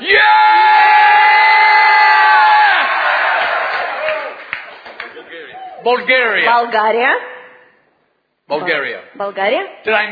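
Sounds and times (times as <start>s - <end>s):
crowd shouting: 0.0s - 4.4s
speech: 5.8s - 7.3s, 8.5s - 10.1s.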